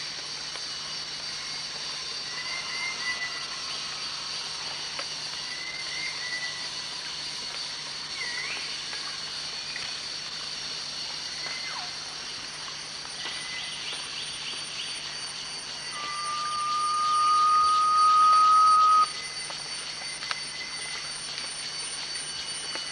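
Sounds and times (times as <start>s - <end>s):
Garnet pitta giving one long level whistle at Danum: 15.8s - 19.2s.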